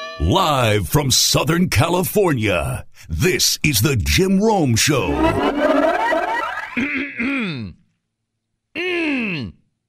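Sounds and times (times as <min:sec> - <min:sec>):
speech: 0:00.2 - 0:05.8
throat clearing: 0:06.8 - 0:07.9, 0:08.8 - 0:09.6.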